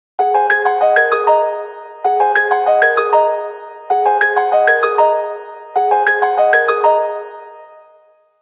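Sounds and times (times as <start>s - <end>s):
piano: 0.2s - 8.4s.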